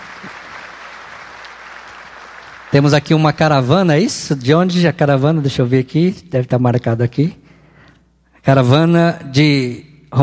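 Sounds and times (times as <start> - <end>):
congregation in a church sanctuary applauding first-time visitors: 0.0 - 3.9
speech: 2.7 - 7.4, 8.4 - 10.2.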